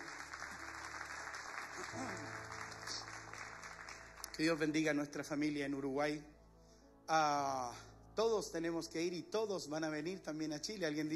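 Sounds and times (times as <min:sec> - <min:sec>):
audience applause: 0:00.0 - 0:04.6
speech: 0:01.9 - 0:02.4, 0:04.4 - 0:06.4, 0:07.1 - 0:11.1.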